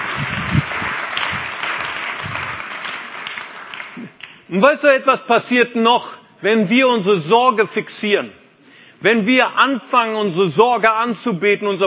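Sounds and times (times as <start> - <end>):
crowd applauding: 0.0 - 4.4
speech: 4.5 - 8.4, 9.0 - 11.8.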